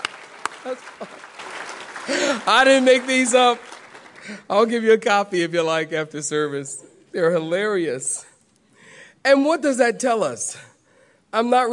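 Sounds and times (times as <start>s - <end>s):
audience clapping hands: 0.0s - 5.2s
speech: 0.6s - 1.4s, 2.1s - 8.3s, 9.2s - 10.7s, 11.3s - 11.7s.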